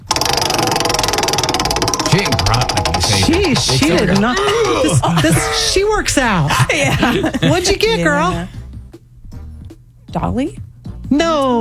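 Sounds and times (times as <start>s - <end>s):
game show prize wheel spinning: 0.0s - 5.8s
laughter: 2.1s - 8.5s
speech: 2.2s - 2.6s, 3.5s - 8.6s, 10.1s - 11.5s.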